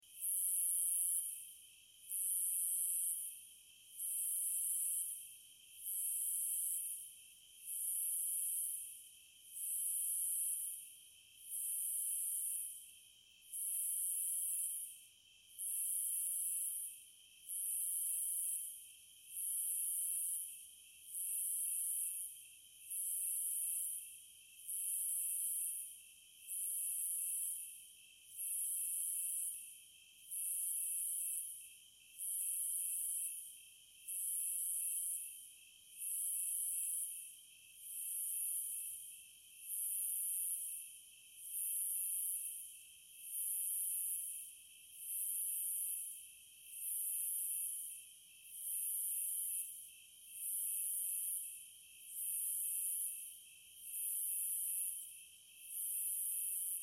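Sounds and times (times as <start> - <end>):
cicadas: 0.0 - 56.8.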